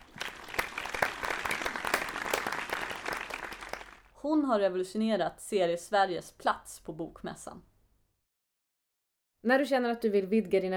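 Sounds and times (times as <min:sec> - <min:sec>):
audience applause: 0:00.0 - 0:04.1
speech: 0:04.2 - 0:07.7, 0:09.4 - 0:10.7.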